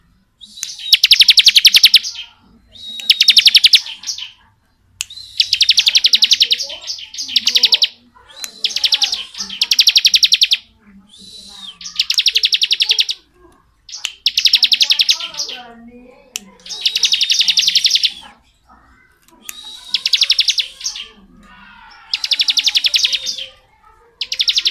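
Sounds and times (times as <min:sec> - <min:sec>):
bar-winged prinia trilling song: 0:00.0 - 0:24.6.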